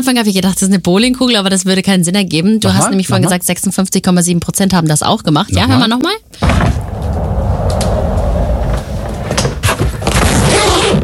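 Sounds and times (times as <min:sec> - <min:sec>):
speech: 0:00.0 - 0:07.4
wheeled suitcase rolling: 0:06.4 - 0:10.9.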